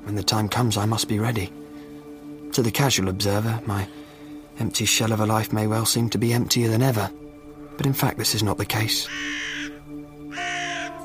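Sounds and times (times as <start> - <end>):
speech: 0.1 - 1.7, 2.6 - 7.2, 7.8 - 9.6
crow cawing: 9.1 - 11.0.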